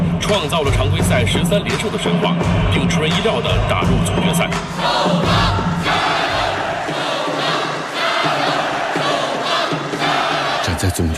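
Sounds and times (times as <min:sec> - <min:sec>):
speech: 0:00.3 - 0:06.0, 0:11.0 - 0:11.1
roaring crowd of basketball fans: 0:03.2 - 0:11.1.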